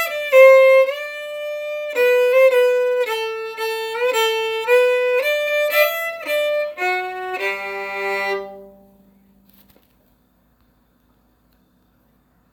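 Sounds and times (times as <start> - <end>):
traditional waltz music: 0.0 - 8.8.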